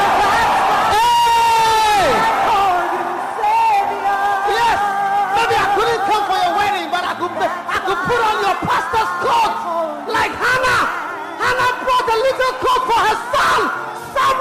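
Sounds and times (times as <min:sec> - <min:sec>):
audience clapping: 0:00.0 - 0:06.7
audience shouting: 0:00.0 - 0:14.3.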